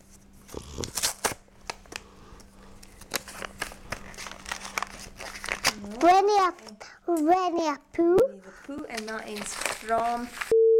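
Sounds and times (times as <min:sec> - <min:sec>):
Christmas present paper crinkling and tearing: 0:00.4 - 0:02.1, 0:02.7 - 0:06.8, 0:08.7 - 0:10.5
speech: 0:06.3 - 0:10.5.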